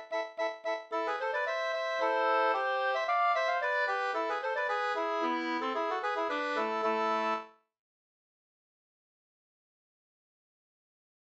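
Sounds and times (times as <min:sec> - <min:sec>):
slangpolska folk dance tune: 0:00.0 - 0:07.5.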